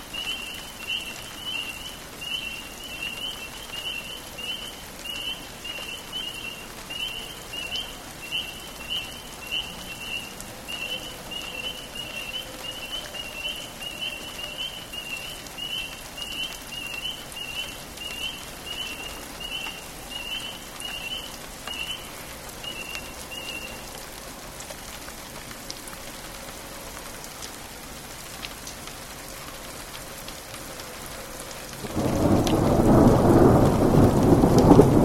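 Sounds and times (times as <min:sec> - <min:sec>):
rain at night in Florence KY: 0:00.0 - 0:35.0
spring peepers calling at night in Florence KY: 0:00.1 - 0:23.9
thunder at night in Florence KY: 0:31.8 - 0:35.0.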